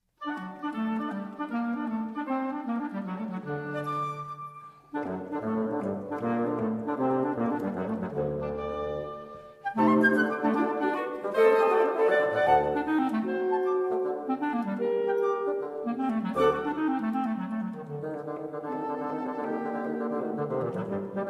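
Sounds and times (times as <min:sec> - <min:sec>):
quintet playing: 0:00.2 - 0:21.2.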